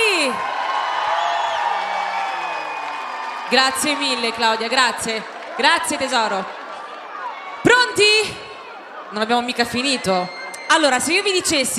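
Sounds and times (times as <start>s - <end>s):
audience cheering: 0.0s - 11.7s
audience applause: 0.4s - 7.6s
speech: 3.5s - 6.6s, 7.7s - 8.4s, 9.1s - 11.7s.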